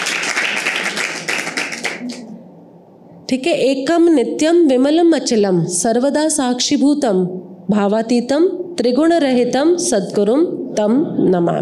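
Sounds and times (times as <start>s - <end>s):
audience clapping: 0.0s - 2.3s
speech: 3.3s - 11.6s.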